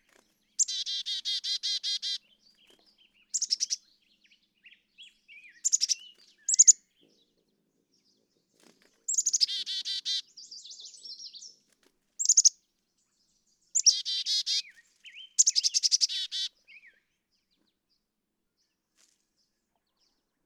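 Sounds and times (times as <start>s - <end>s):
Black-capped chickadee giving buzzy harsh dee notes and thin high chips: 0.6s - 2.3s, 3.2s - 3.9s, 5.0s - 6.8s, 9.1s - 11.6s, 12.2s - 12.6s, 13.7s - 16.9s.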